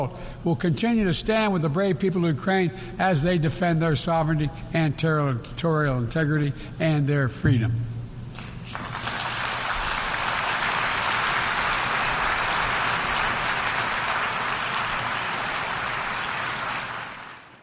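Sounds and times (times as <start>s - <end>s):
speech: 0.0s - 7.9s
audience applause: 8.6s - 17.6s.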